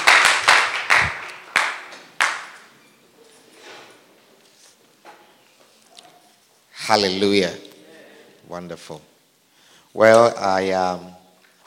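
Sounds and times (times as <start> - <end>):
audience clapping: 0.0 - 2.7
speech: 6.9 - 7.6, 8.5 - 9.1, 10.0 - 11.2.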